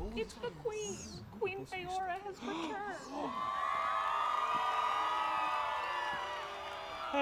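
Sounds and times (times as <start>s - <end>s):
speech: 0.1s - 3.7s
crowd cheering: 3.1s - 7.2s.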